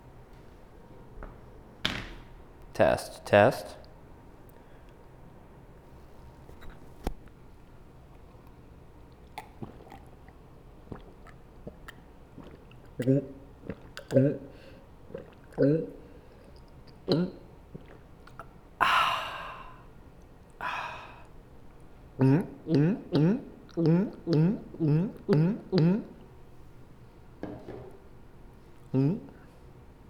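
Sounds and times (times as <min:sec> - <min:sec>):
person chugging water: 0:09.1 - 0:19.9, 0:22.2 - 0:26.3
person sighing ahh: 0:18.8 - 0:19.9, 0:20.6 - 0:21.3, 0:28.9 - 0:29.5.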